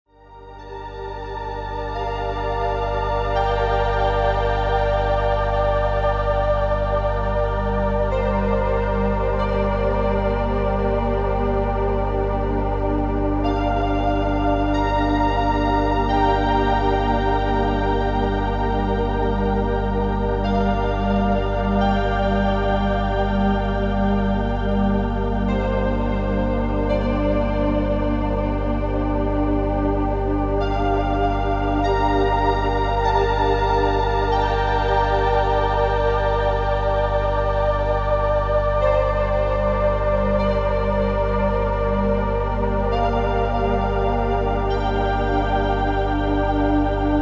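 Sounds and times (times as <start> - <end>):
music for Reiki and meditation: 0.1 - 47.1.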